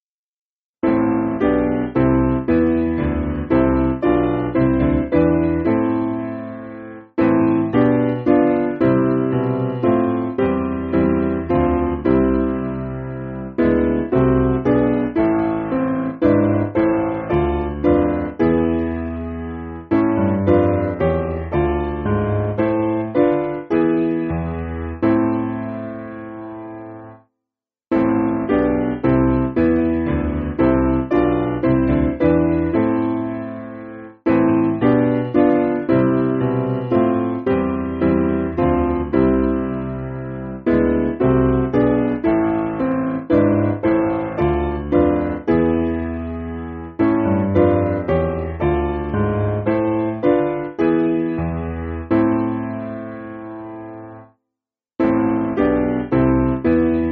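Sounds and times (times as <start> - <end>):
piano backing music for churches: 0.8 - 27.2, 27.9 - 54.3, 55.0 - 57.1.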